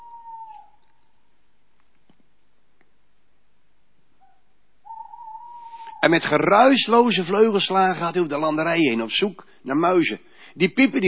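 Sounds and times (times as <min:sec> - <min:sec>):
male tawny owl hooting: 0:00.0 - 0:01.1, 0:04.2 - 0:07.6
speech: 0:06.0 - 0:11.0.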